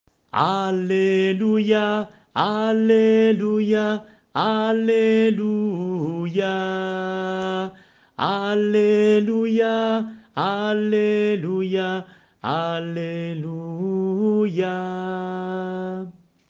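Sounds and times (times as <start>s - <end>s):
sung Alleluia psalm: 0.2s - 16.4s.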